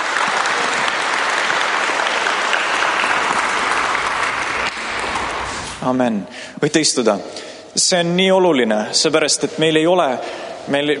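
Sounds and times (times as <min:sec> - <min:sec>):
audience applauding: 0:00.0 - 0:05.8
speech: 0:05.8 - 0:10.9.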